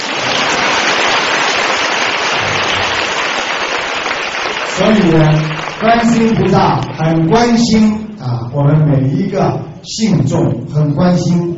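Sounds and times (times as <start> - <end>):
audience applause: 0.0 - 7.0
speech: 4.8 - 8.0, 8.6 - 11.5.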